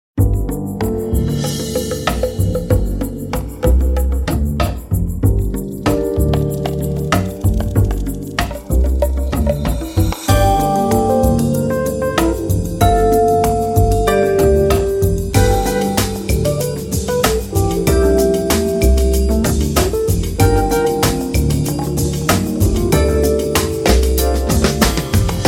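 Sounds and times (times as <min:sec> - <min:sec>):
latin lounge music: 0:00.2 - 0:25.4.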